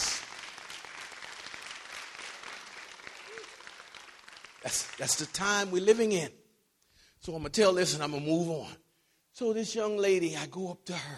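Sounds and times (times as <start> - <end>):
audience hand clapping in praise: 0.0 - 6.0
speech: 4.6 - 6.4, 7.2 - 8.8, 9.4 - 11.1.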